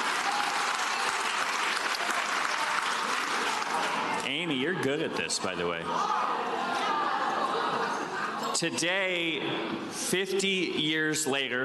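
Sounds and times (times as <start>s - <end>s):
audience applause: 0.0s - 4.2s
speech: 4.3s - 6.7s, 8.6s - 11.6s
laughter: 6.0s - 9.4s.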